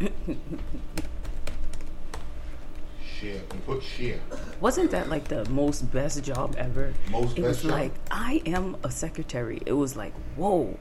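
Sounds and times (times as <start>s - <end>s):
speech: 0.0s - 1.0s, 3.2s - 10.8s
rapid typing on a computer keyboard: 1.0s - 2.8s, 5.2s - 6.8s.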